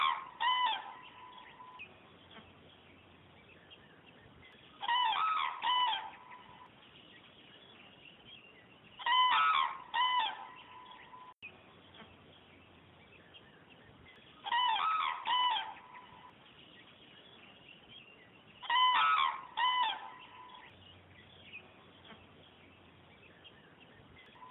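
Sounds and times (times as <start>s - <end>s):
cranes calling: 0.0s - 1.8s, 4.8s - 6.7s, 9.0s - 11.3s, 14.4s - 16.3s, 18.6s - 20.7s.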